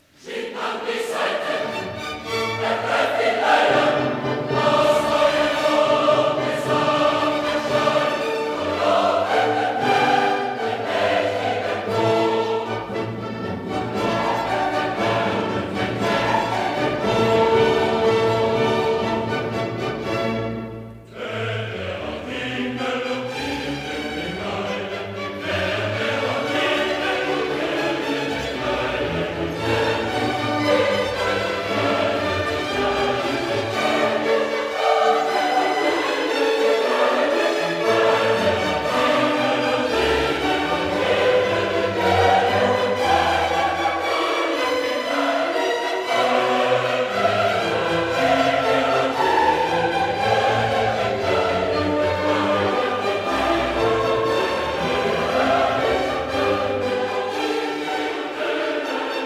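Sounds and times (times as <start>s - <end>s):
choir singing: 0.0s - 59.2s.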